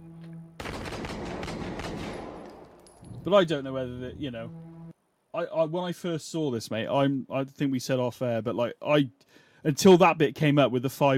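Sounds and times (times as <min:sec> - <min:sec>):
gunfire in a body cam footage style video game: 0:00.6 - 0:02.6
speech: 0:03.2 - 0:04.6, 0:05.4 - 0:11.1.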